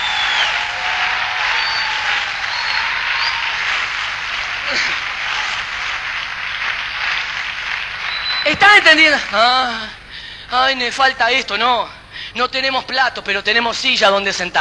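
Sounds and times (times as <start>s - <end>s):
audience applauding: 0.0s - 9.9s
speech: 8.6s - 14.6s.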